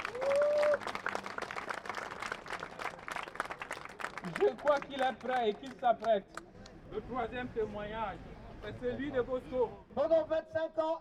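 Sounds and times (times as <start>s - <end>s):
applause: 0.0s - 6.8s
speech: 4.2s - 11.0s.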